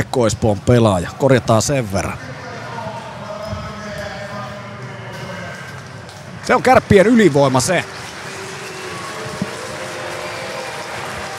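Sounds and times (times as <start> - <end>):
speech: 0.0 - 2.3, 6.5 - 8.0
arena crowd applauding at ice hockey game: 5.7 - 11.3.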